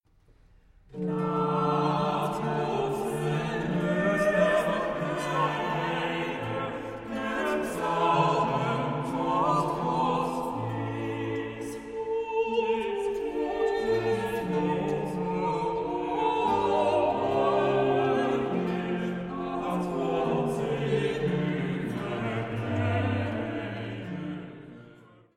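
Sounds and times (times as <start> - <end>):
chorale: 0.3 - 25.3.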